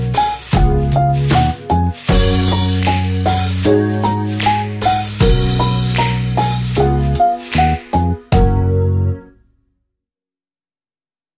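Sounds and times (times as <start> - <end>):
reggae riddim: 0.0 - 8.9.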